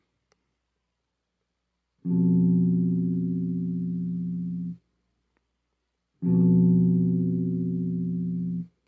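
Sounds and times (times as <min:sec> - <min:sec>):
tritone interval played on guitar: 0:02.0 - 0:04.8, 0:06.2 - 0:08.7.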